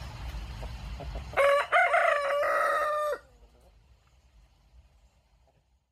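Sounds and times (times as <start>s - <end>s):
rooster crowing: 1.3s - 3.4s.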